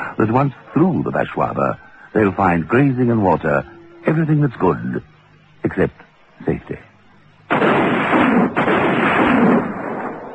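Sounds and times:
speech: 0.2s - 6.9s
gunshot: 7.5s - 10.3s.

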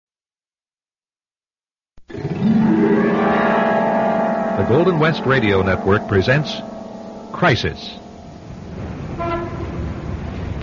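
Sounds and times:
ambulance siren approaching: 2.7s - 10.2s
dense traffic rumble and noise: 3.0s - 10.6s
speech: 4.6s - 8.0s.

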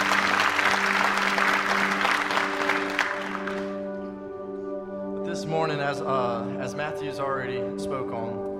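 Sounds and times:
applause welcoming musicians: 0.0s - 3.9s
speech: 5.5s - 8.5s.

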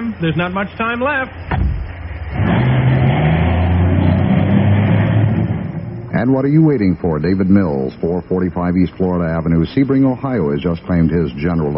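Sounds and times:
speech: 0.2s - 1.6s, 6.1s - 11.7s
car engine starting, revving and pulling away: 1.5s - 6.9s.

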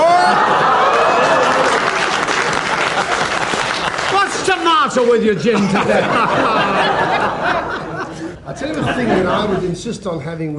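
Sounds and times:
laughter: 0.0s - 4.4s, 5.4s - 9.9s
studio audience applauding: 0.1s - 8.0s
speech: 5.0s - 7.8s, 8.5s - 10.5s.

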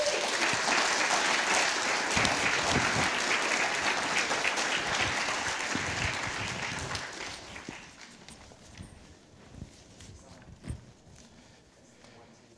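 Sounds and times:
church congregation applauding a pastor: 0.0s - 8.4s.

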